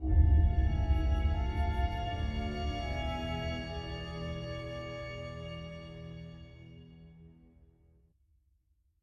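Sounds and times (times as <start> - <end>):
dark cave walk music ending: 0.0 - 7.6.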